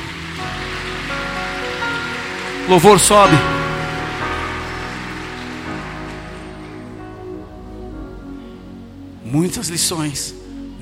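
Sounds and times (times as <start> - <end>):
audience applause: 0.0 - 7.2
sustained musical tones: 0.0 - 10.8
speech: 2.7 - 3.6, 9.3 - 10.8.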